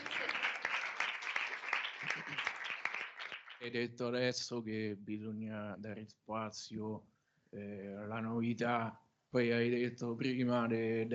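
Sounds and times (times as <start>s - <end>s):
applause: 0.0s - 3.8s
speech: 3.6s - 11.1s.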